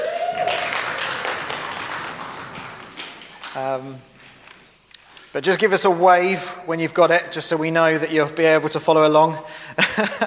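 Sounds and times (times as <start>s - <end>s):
audience applause: 0.0s - 3.9s
speech: 3.6s - 4.1s, 5.3s - 10.2s
laughter: 9.8s - 10.2s.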